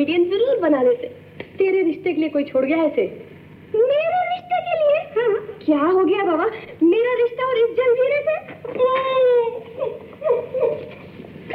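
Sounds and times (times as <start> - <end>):
speech: 0.0 - 4.0, 5.2 - 11.0
woman crying in a dramatic film scene: 8.7 - 11.5.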